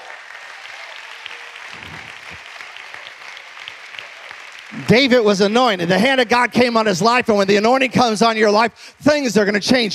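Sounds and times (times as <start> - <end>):
faint voices murmuring: 0.0 - 4.9
audience hand clapping in praise: 0.0 - 6.9
speech: 4.7 - 9.9.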